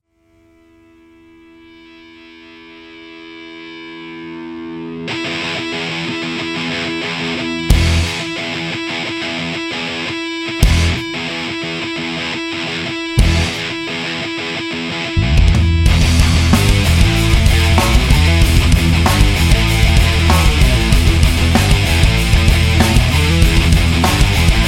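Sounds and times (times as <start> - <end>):
instrumental music: 0.3 - 24.6.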